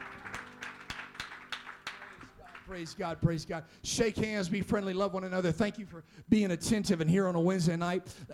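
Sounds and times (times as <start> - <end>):
audience hand clapping in praise: 0.0 - 3.2
speech: 2.7 - 8.3.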